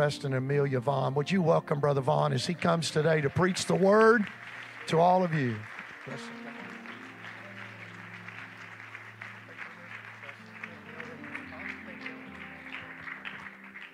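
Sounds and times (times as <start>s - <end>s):
speech: 0.0s - 6.4s
audience clapping hands: 2.8s - 13.9s.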